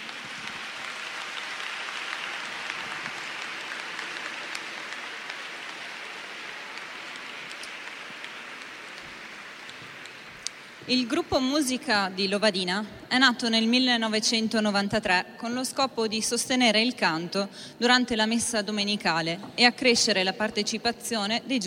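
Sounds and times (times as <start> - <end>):
audience applause in a church: 0.0 - 10.9
speech: 10.9 - 21.6.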